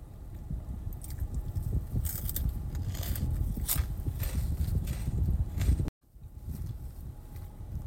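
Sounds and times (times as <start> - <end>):
biting and chewing a Cheeto: 1.0 - 5.9.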